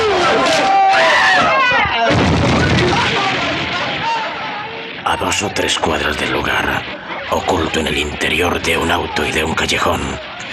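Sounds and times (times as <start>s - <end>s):
crowd uproar with shouting voices: 0.0s - 5.3s
gunfire: 1.4s - 5.0s
speech: 5.4s - 10.3s.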